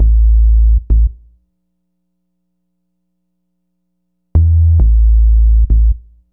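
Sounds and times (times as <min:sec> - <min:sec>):
synth bass: 0:00.0 - 0:01.2, 0:04.4 - 0:06.1.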